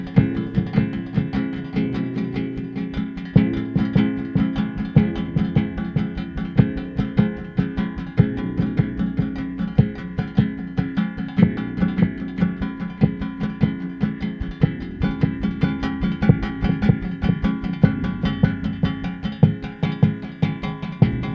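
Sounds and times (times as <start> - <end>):
drum brushes: 0.0 - 21.3.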